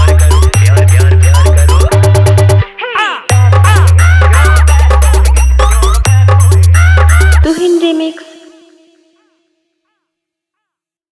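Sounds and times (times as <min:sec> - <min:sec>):
humming electronic dance music mix: 0:00.0 - 0:02.6, 0:03.3 - 0:07.6.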